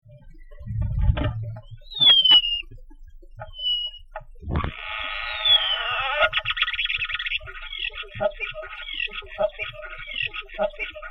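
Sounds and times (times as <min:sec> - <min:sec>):
starling singing: 0:01.8 - 0:02.7, 0:03.4 - 0:04.0, 0:04.8 - 0:11.1.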